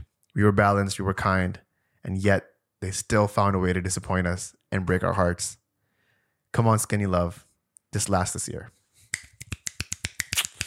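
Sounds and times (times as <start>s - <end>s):
speech: 0.4s - 5.6s, 6.5s - 8.8s
finger snapping: 9.1s - 10.6s.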